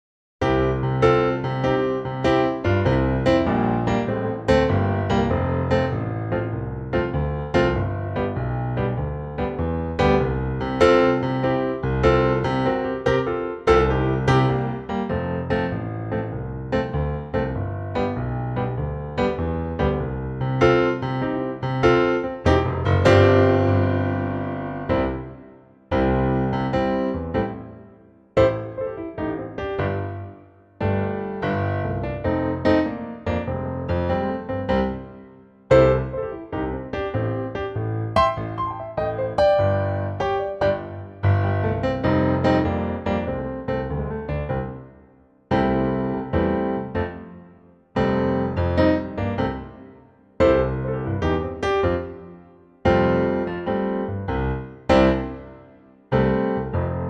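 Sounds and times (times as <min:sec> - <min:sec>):
piano note C: 0:00.4 - 0:57.0.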